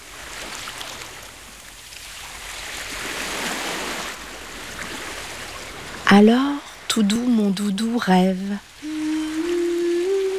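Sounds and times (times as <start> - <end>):
sea heard in a seashell: 4.4 - 10.3
speech: 6.1 - 8.7.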